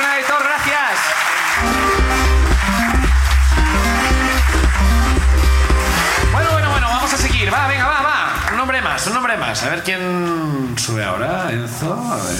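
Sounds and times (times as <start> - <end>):
crowd applauding: 0.0 - 9.9
loud bass-heavy music bed: 1.6 - 9.5
speech: 9.5 - 12.3.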